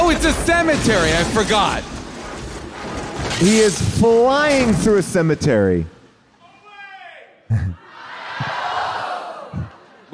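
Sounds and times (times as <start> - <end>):
speech: 0.1 - 2.0, 3.4 - 5.9, 7.5 - 7.8
audience chanting coordinated chants: 7.8 - 10.0.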